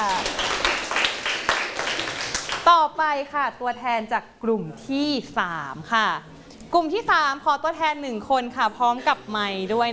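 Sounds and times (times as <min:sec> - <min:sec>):
students in a classroom clapping: 0:00.0 - 0:02.7
speech: 0:02.8 - 0:09.9.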